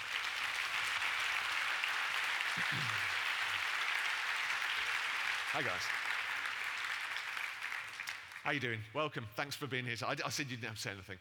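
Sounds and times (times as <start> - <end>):
audience clapping: 0.0 - 8.7
speech: 2.6 - 3.1, 5.5 - 6.1, 8.4 - 11.1.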